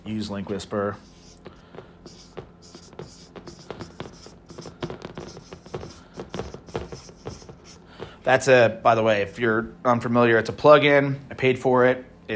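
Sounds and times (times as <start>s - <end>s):
speech: 0.1s - 1.6s, 8.3s - 12.3s
pen handwriting a note: 1.0s - 7.9s.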